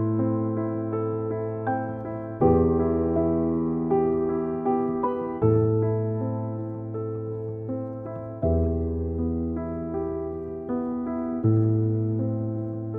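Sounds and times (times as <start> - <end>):
mellow pianissimo piano: 0.0 - 12.9.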